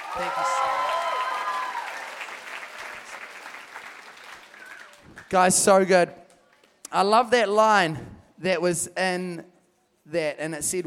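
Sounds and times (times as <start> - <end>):
audience applause: 0.0 - 5.4
speech: 0.2 - 0.6, 5.3 - 6.2, 6.9 - 9.5, 10.1 - 10.8.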